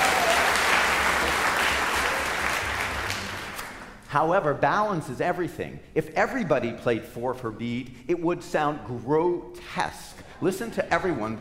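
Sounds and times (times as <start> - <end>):
audience applause during an orchestral music demonstration: 0.0 - 4.0
speech: 4.1 - 11.3.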